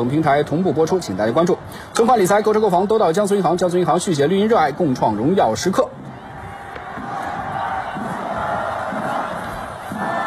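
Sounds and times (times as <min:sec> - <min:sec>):
speech: 0:00.0 - 0:06.0
football fans cheering at a stadium during a league match: 0:05.8 - 0:10.2.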